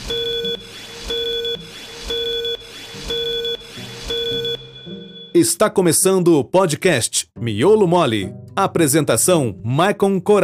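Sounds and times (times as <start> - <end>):
short electronic countdown beeps: 0.0 - 5.4
speech: 5.4 - 10.4.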